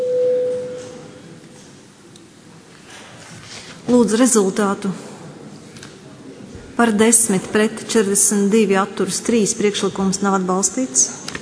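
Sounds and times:
chamber bell signalling a vote: 0:00.0 - 0:00.8
speech: 0:03.9 - 0:05.1, 0:06.8 - 0:11.4.

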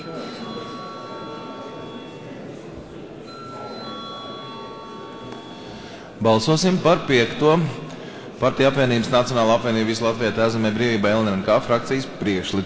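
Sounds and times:
parliament voting bell ringing: 0:00.0 - 0:07.8
murmur of indistinct voices: 0:00.0 - 0:12.6
speech: 0:06.2 - 0:07.8, 0:08.4 - 0:12.6.

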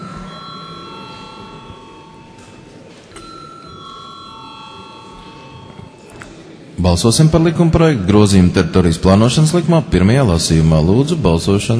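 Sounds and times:
electronic bell ringing in the Latvian parliament chamber before a vote: 0:00.0 - 0:06.7
faint murmur in the Latvian parliament chamber: 0:00.0 - 0:11.7
speech: 0:06.8 - 0:11.7.

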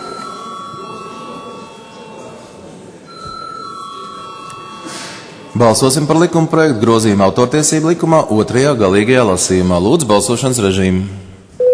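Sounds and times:
parliament chamber bell rung before a vote: 0:00.0 - 0:06.6
speech: 0:05.6 - 0:11.3.

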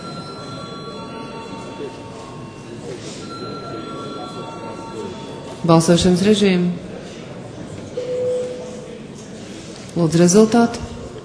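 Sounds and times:
parliament voting bell ringing: 0:00.0 - 0:06.3
murmur of voices: 0:00.0 - 0:11.2
speech: 0:05.6 - 0:06.8, 0:10.0 - 0:10.9.

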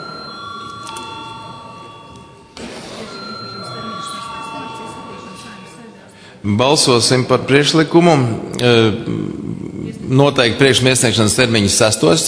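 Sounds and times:
parliamentary chamber bell ringing: 0:00.0 - 0:07.1
speech: 0:06.4 - 0:09.4, 0:10.1 - 0:12.2.

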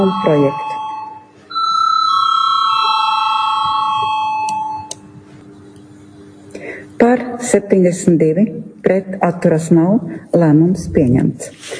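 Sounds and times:
speech: 0:00.0 - 0:00.6, 0:07.6 - 0:11.7
parliament chamber vote bell electronic tone: 0:00.0 - 0:05.0.

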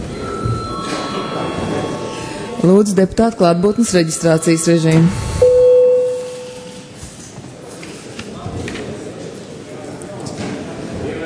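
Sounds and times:
parliament chamber bell ringing with harsh metallic buzz: 0:00.0 - 0:06.9
speech: 0:02.6 - 0:05.3.

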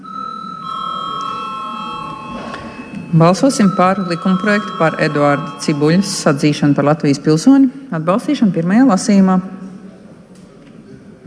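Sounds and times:
parliament chamber bell ringing: 0:00.0 - 0:07.6
speech: 0:03.1 - 0:09.6.

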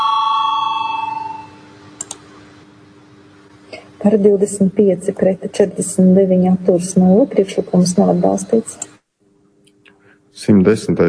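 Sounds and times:
parliament chamber bell ringing: 0:00.0 - 0:01.6
sharp clicks: 0:02.0 - 0:02.2
speech: 0:04.0 - 0:08.9, 0:10.4 - 0:11.0.

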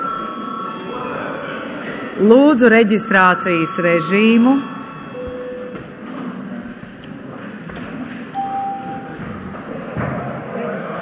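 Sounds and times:
speech: 0:02.2 - 0:04.7
session break bell ringing: 0:02.9 - 0:05.8, 0:08.4 - 0:09.2.

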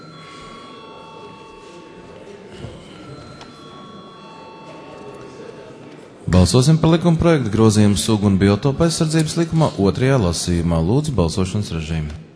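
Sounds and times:
parliament voting bell ringing: 0:00.0 - 0:09.5
faint murmur: 0:00.0 - 0:10.5
speech: 0:06.4 - 0:12.2.

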